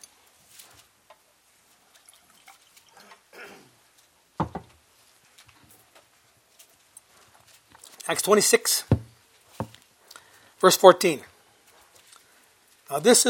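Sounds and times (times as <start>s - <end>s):
person getting a drink of water: 1.9s - 3.7s
speech: 8.1s - 9.0s, 10.6s - 11.3s, 12.9s - 13.2s.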